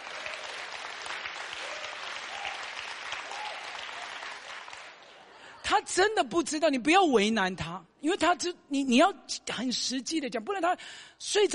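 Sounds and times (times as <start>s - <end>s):
audience applause: 0.0s - 5.4s
speech: 5.7s - 11.5s.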